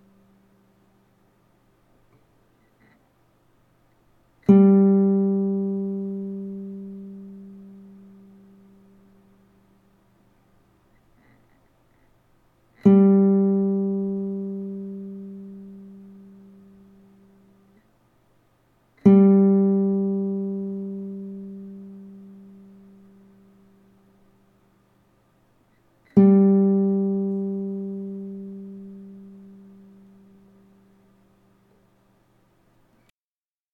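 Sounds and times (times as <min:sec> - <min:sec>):
Spanish guitar third string G being tuned: 0:04.4 - 0:09.7, 0:12.8 - 0:17.8, 0:19.0 - 0:24.2, 0:26.1 - 0:31.8.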